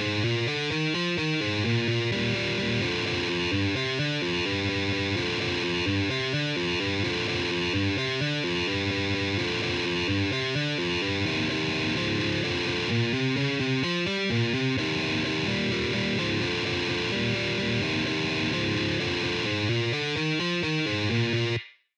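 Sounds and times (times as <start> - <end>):
guitar: 0.0 - 21.8.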